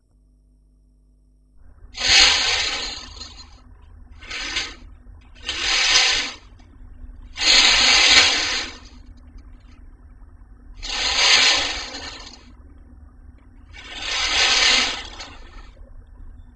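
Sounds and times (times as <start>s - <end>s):
hospital curtains moving: 2.0s - 3.6s, 4.2s - 4.8s, 5.4s - 6.5s, 7.4s - 8.9s, 10.8s - 12.5s, 13.8s - 15.7s.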